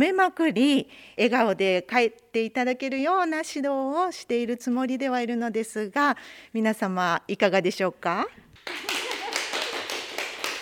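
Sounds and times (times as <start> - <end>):
speech: 0.0 - 9.0
audience clapping: 8.6 - 10.6.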